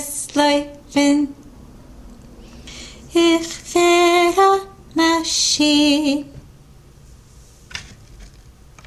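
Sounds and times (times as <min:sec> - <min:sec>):
soprano singing: 0:00.0 - 0:01.4, 0:03.1 - 0:06.4.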